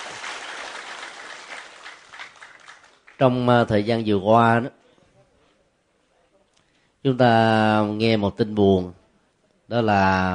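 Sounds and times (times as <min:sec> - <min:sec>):
crowd clapping: 0:00.0 - 0:03.5
speech: 0:03.2 - 0:04.8, 0:07.0 - 0:09.0, 0:09.7 - 0:10.3.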